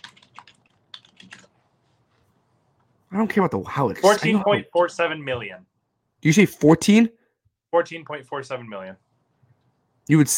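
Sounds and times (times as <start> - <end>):
fingers typing a web search on a computer keyboard: 0.0 - 1.6
speech: 3.1 - 9.0, 10.1 - 10.3.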